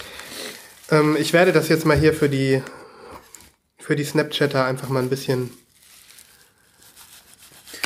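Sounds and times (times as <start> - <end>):
packaging tearing: 0.0 - 2.6, 4.5 - 7.8
bubble wrap and cardboard packaging crinkling and rustling: 0.0 - 7.8
speech: 0.9 - 2.8, 3.9 - 5.6.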